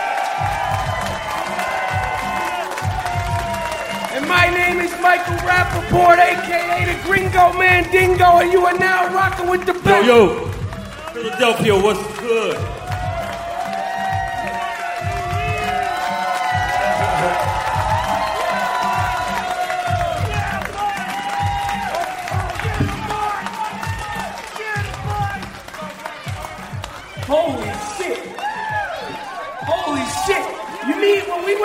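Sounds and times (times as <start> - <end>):
live audience cheering: 0.0 - 31.6
speech: 4.4 - 10.5, 11.2 - 12.8.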